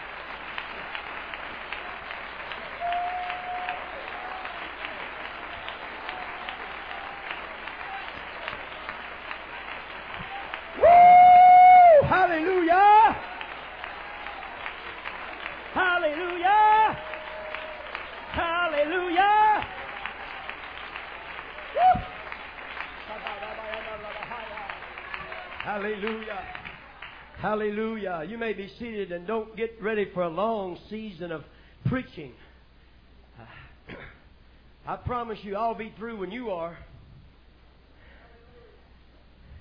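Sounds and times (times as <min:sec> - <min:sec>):
audience clapping hands: 0:00.0 - 0:28.0
speech: 0:27.6 - 0:32.4, 0:34.9 - 0:36.9.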